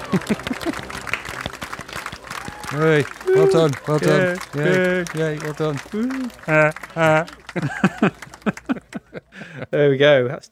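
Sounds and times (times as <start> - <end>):
laughter: 0.0 - 2.1, 2.7 - 10.3
soft polite golf clap: 0.0 - 9.1
speech: 0.1 - 1.0, 2.7 - 10.4
low murmur of voice: 2.8 - 7.3.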